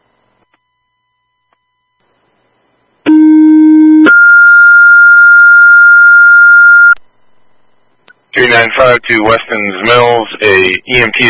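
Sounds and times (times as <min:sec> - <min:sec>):
dispatch radio two-tone pager alert: 0:03.1 - 0:07.0
speech: 0:08.5 - 0:11.2.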